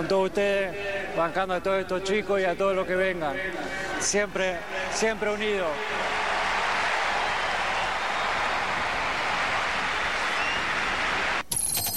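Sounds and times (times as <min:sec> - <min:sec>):
speech: 0:00.0 - 0:06.0
stadium crowd ovation and applause: 0:04.1 - 0:11.5.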